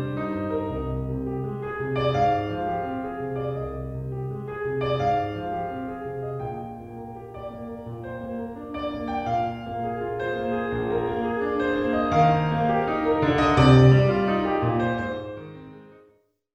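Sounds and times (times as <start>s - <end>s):
pop piano music: 0.0s - 15.9s.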